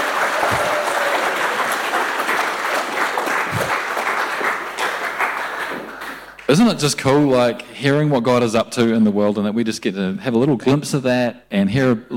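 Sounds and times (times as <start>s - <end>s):
audience clapping: 0.0s - 7.2s
speech: 6.5s - 12.1s.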